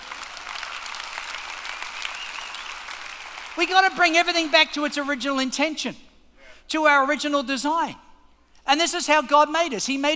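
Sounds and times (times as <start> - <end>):
audience applause: 0.0 - 3.7
speech: 3.6 - 6.0, 6.7 - 8.0, 8.7 - 10.1.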